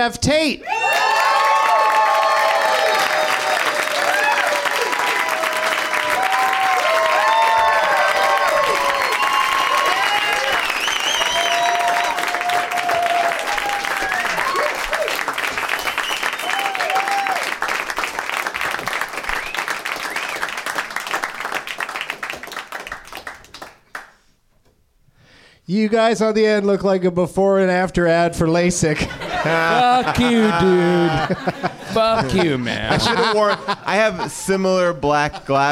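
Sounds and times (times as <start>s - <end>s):
speech: 0.0s - 1.0s, 25.7s - 35.7s
studio audience whoops and shouts: 0.6s - 15.2s, 16.4s - 17.5s
studio audience clapping to welcome three comedy guests: 0.7s - 24.3s
laughter: 29.0s - 35.7s.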